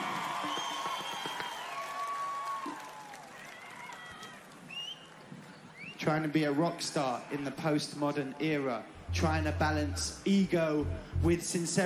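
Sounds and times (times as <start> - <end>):
live audience applause: 0.0 - 4.6
cheers and whistles: 0.0 - 6.0
speech: 6.1 - 11.8.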